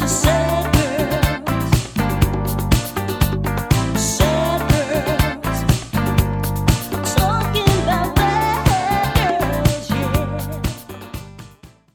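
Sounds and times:
cover band playing a medley in Miami: 0:00.0 - 0:11.7.

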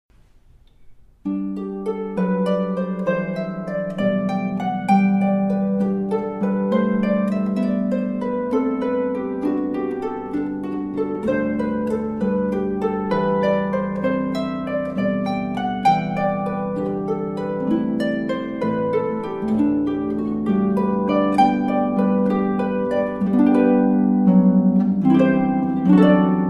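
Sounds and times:
harp playing: 0:00.7 - 0:26.4.

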